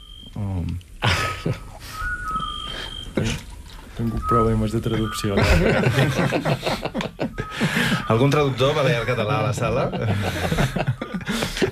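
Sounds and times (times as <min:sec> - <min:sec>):
hiss: 0:00.0 - 0:11.6
speech: 0:00.4 - 0:01.7, 0:04.0 - 0:11.4
laughter: 0:01.0 - 0:01.8, 0:04.6 - 0:11.6
scops owl call: 0:01.5 - 0:03.4, 0:04.0 - 0:06.3, 0:07.2 - 0:09.4.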